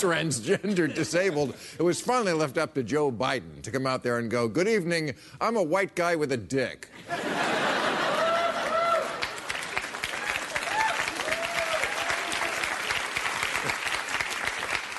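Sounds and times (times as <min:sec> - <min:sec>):
speech: 0:00.0 - 0:07.4
laughter: 0:00.4 - 0:01.6, 0:07.0 - 0:09.4
crowd applauding: 0:07.4 - 0:14.9
brief cheers and voices: 0:10.2 - 0:12.6.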